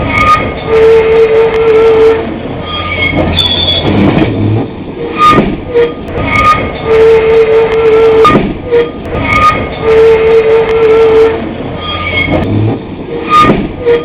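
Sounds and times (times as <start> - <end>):
flanged train sound: 0.0 - 14.0.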